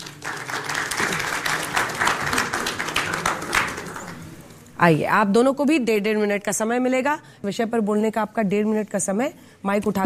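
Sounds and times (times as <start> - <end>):
audience applause: 0.0 - 4.3
speech: 4.8 - 10.0.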